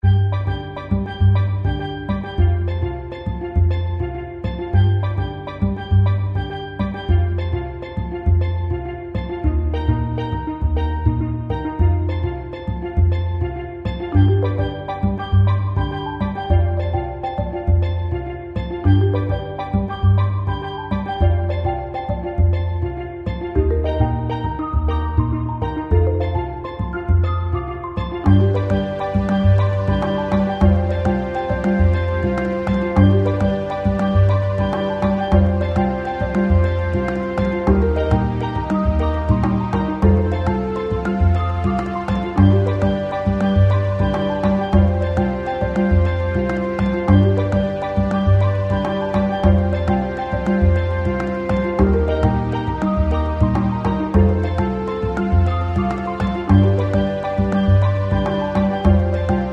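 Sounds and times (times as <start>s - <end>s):
music: 0.0s - 59.5s.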